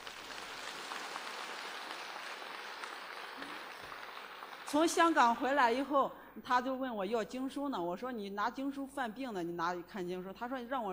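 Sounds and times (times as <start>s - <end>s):
audience applauding: 0.0s - 5.0s
speech: 4.7s - 10.9s.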